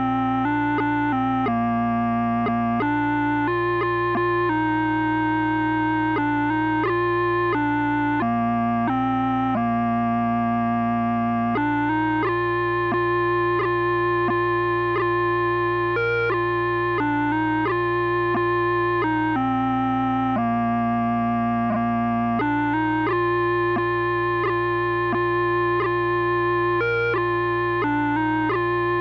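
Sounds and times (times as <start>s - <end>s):
pipes playing a tune: 0.0s - 28.9s.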